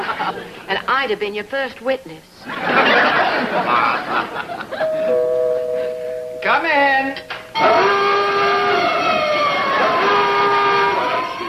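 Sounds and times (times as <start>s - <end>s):
laughter: 0.0s - 0.6s, 2.4s - 5.2s
speech: 0.2s - 5.4s
homemade burglar alarm blaring: 4.8s - 11.4s.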